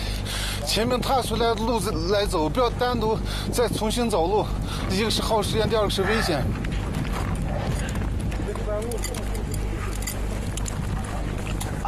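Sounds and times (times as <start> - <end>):
speech: 0.7 - 6.6
tired horses' hooves trudging through deep snow on a mountain trek: 3.8 - 11.8.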